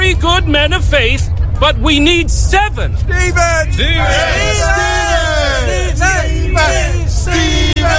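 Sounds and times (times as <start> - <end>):
speech: 0.1 - 7.9
crowd shouting a name: 3.3 - 7.9.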